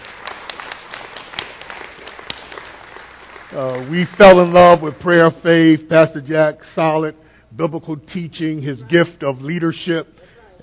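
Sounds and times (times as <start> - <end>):
audience clapping: 0.0 - 5.8
speech: 3.5 - 10.6.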